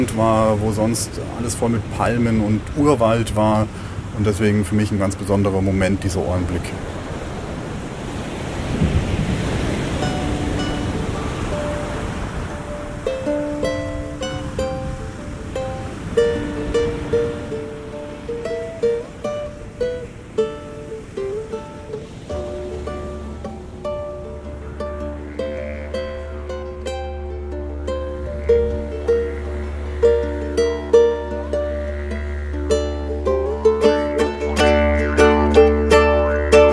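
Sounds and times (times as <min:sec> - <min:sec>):
speech: 0:00.0 - 0:06.9
gusty wind buffeting the microphone: 0:00.0 - 0:36.7
heavy ocean surf crashing on the beach: 0:00.0 - 0:36.7.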